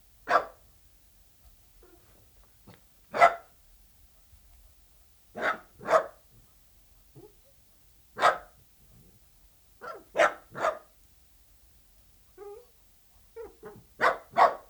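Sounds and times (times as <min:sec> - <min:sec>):
dachshund barking: 0:00.3 - 0:00.6, 0:03.1 - 0:03.5, 0:05.4 - 0:06.2, 0:08.2 - 0:08.6, 0:09.8 - 0:10.9, 0:13.4 - 0:14.6.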